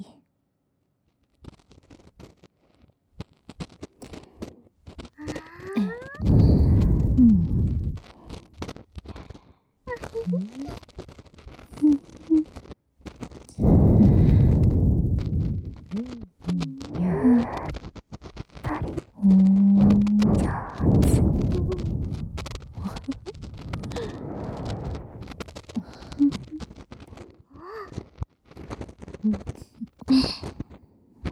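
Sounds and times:
ear cleaning in the right ear ASMR: 5.2s - 8.5s, 9.9s - 30.8s.

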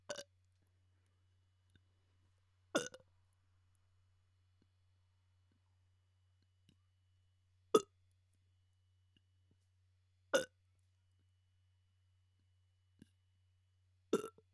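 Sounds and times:
person burping: 2.8s - 3.0s.

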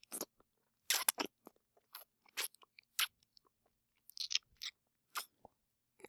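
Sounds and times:
kissing sound: 0.9s - 1.3s.

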